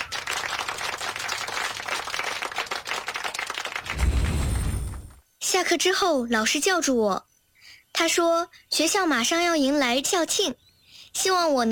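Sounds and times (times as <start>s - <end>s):
classroom group of people clapping: 0.0s - 4.4s
low rumbling noise: 3.8s - 5.2s
speech: 5.6s - 7.2s, 8.0s - 10.6s, 11.2s - 11.7s.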